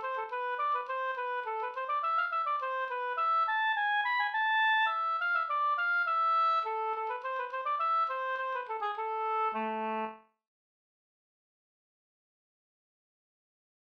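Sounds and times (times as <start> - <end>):
slängpolska folk dance tune: 0.0 - 10.2.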